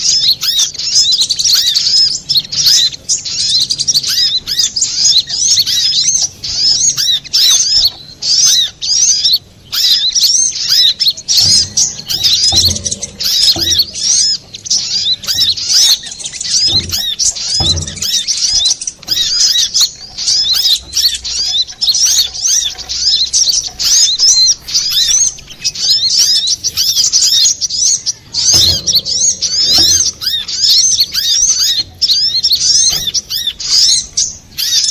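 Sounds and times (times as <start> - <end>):
little spiderhunter song: 0.0 - 34.9
low knock: 11.3 - 21.4, 28.2 - 33.3.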